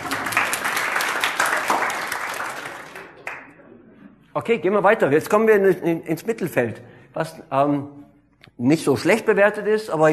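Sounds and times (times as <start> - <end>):
crowd applause: 0.0 - 3.5
speech: 4.4 - 10.1.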